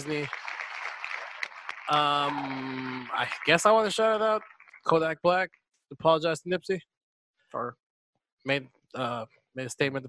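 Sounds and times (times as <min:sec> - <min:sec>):
speech: 0:00.0 - 0:00.5, 0:01.9 - 0:06.9, 0:07.5 - 0:07.8, 0:08.4 - 0:10.0
crowd applause: 0:00.0 - 0:05.1.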